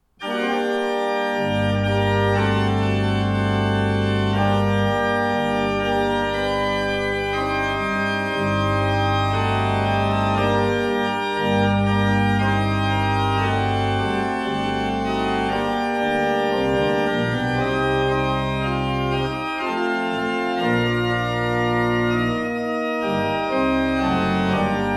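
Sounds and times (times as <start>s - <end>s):
pipe organ: 0.2s - 24.9s.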